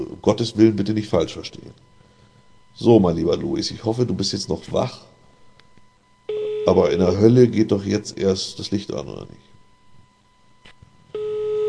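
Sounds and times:
speech: 0.1 - 1.8, 2.8 - 5.1, 6.6 - 9.5
telephone ringback tone: 6.3 - 7.2, 11.1 - 11.6.

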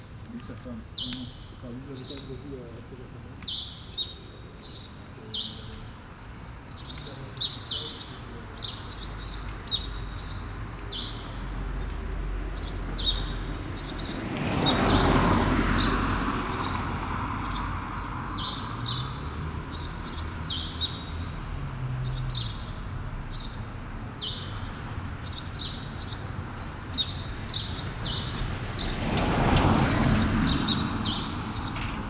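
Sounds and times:
sparrows chirping: 0.0 - 32.0
traffic rumble: 0.0 - 32.0
speech: 0.5 - 3.7
vehicle passing: 11.5 - 23.2, 27.3 - 32.0.

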